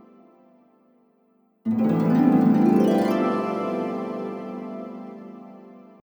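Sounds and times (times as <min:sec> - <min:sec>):
harp: 0:01.7 - 0:06.0.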